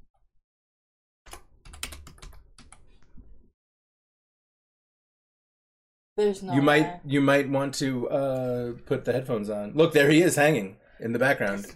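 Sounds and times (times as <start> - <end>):
rapid typing on a computer keyboard: 1.3 - 2.9
speech: 6.2 - 11.7.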